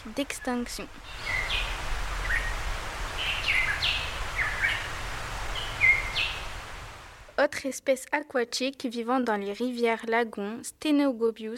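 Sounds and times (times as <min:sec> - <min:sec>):
speech: 0:00.0 - 0:01.6, 0:07.4 - 0:11.5
Tahiti monarch chirping calls: 0:00.2 - 0:06.8.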